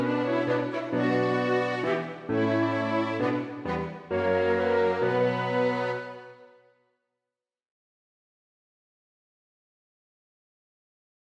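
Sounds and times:
minuet for two violins, cello, flute, horn and piano: 0.0s - 6.5s.

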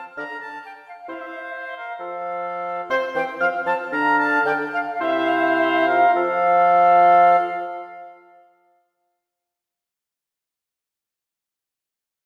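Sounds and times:
wind quintet playing a gavotte: 0.0s - 8.6s.

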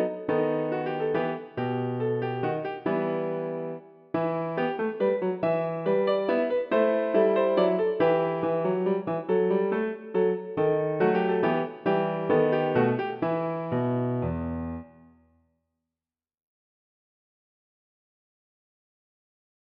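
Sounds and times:
piano minuet: 0.0s - 15.2s.

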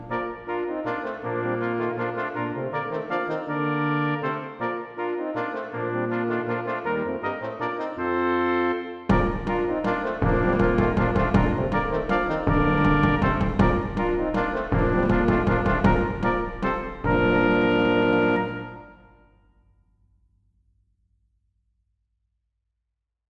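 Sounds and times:
drums: 0.0s - 0.8s, 9.1s - 18.8s
brass quintet playing a minuet: 0.0s - 19.2s.

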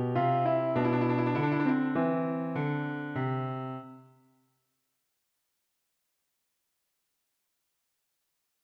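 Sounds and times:
galliard piano improvisation: 0.0s - 4.0s.

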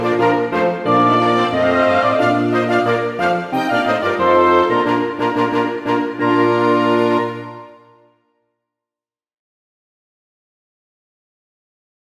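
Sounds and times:
large ensemble playing a march: 0.0s - 7.8s.

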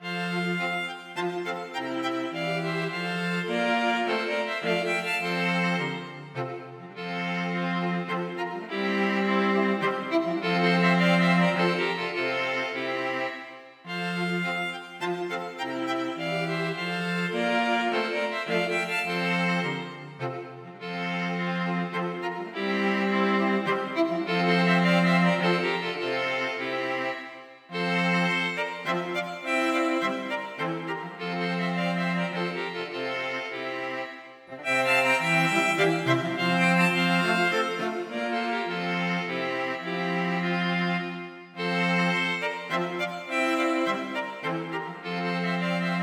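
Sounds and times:
string quartet playing a minuet: 0.0s - 46.0s.

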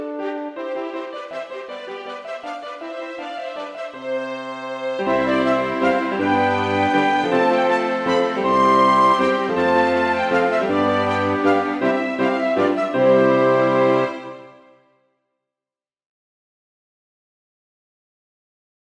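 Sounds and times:
minuet played by large ensemble: 0.0s - 14.5s.

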